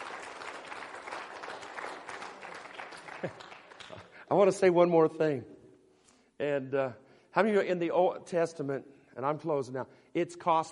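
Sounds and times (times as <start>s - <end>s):
audience hand clapping: 0.0s - 4.3s
speech: 3.2s - 3.5s, 4.3s - 5.5s, 6.4s - 10.7s.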